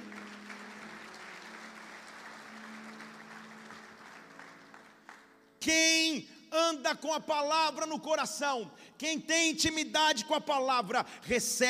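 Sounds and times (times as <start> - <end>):
audience applauding: 0.0 - 5.6
speech: 5.6 - 11.6.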